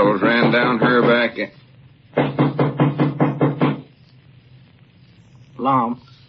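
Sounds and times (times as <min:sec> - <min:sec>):
knocking on a door: 0:00.2 - 0:01.3, 0:02.1 - 0:03.9
speech: 0:00.5 - 0:02.5, 0:05.6 - 0:06.1.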